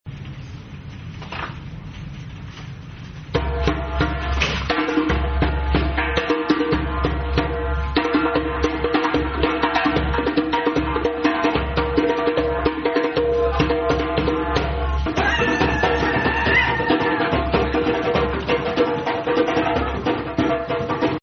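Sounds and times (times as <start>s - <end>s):
drums: 0.0s - 21.2s.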